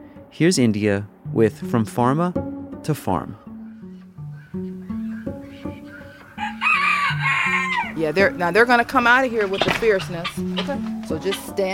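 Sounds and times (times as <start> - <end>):
speech: 0.3 - 3.4, 8.0 - 11.7
chickens clucking: 4.4 - 11.7
rooster crowing: 5.0 - 8.1.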